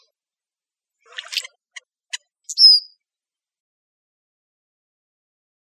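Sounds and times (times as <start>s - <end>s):
icterid bird calls: 1.1s - 1.8s, 2.5s - 2.9s.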